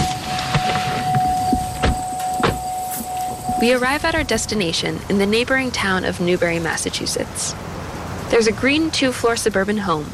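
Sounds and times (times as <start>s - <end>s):
pickup truck door and cab thumps and clicks: 0.5s - 3.6s
speech: 3.6s - 7.7s, 8.3s - 10.1s.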